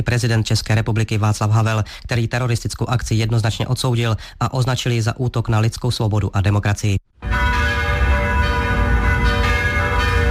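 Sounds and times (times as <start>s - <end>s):
speech: 0.0s - 7.0s
bells of Prague churches ringing: 7.2s - 10.2s.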